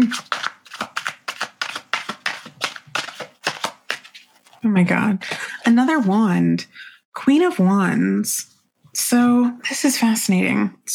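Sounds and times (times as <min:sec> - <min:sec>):
speech: 0:00.0 - 0:00.3, 0:04.6 - 0:08.5, 0:09.1 - 0:10.9
tarot cards being shuffled and drawn: 0:00.0 - 0:04.6.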